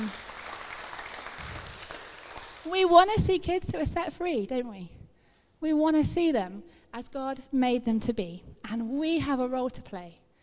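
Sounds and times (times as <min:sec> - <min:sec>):
crowd clapping: 0:00.0 - 0:02.9
speech: 0:02.6 - 0:05.0, 0:05.6 - 0:10.2.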